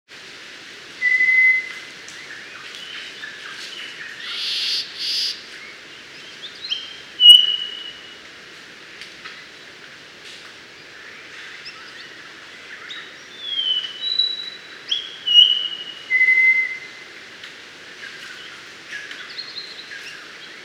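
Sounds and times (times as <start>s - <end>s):
mangrove robin Melanodryas pulverulenta whistled notes: 1.0s - 1.8s, 6.7s - 8.1s, 13.5s - 16.9s.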